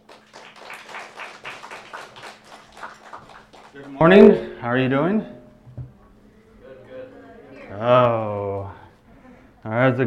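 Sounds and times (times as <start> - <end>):
audience clapping welcoming a speaker: 0.0 - 4.4, 7.7 - 9.0
speech: 3.8 - 5.4, 7.8 - 8.3, 9.8 - 10.0.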